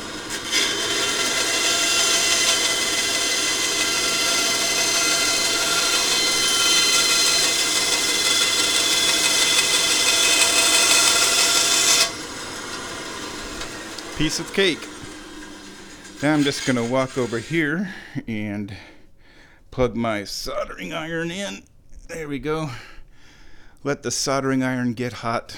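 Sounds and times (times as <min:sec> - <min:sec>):
bandsaw cutting a small piece: 0:00.0 - 0:17.8
speech: 0:14.2 - 0:15.0, 0:16.2 - 0:18.9, 0:19.8 - 0:22.9, 0:23.8 - 0:25.5.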